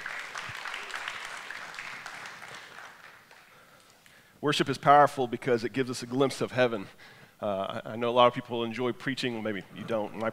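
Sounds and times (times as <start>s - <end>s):
audience applauding: 0.0s - 3.9s
speech: 4.4s - 10.3s.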